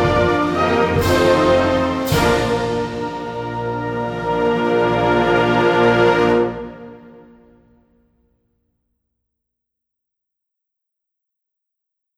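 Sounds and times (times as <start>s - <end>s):
band playing a national anthem: 0.0s - 7.0s.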